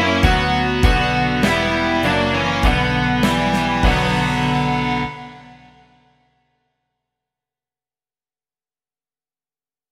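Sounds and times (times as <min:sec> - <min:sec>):
rock music: 0:00.0 - 0:06.2.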